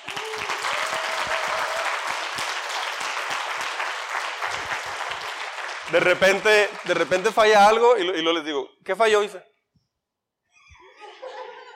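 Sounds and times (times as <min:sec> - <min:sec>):
audience applause: 0:00.0 - 0:07.9
speech: 0:05.9 - 0:09.5
laughter: 0:10.8 - 0:11.7.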